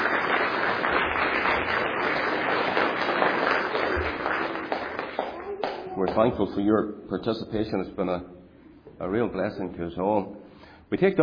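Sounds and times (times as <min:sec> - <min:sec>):
audience round of applause for the children: 0:00.0 - 0:05.9
speech: 0:06.1 - 0:08.4, 0:09.0 - 0:11.2.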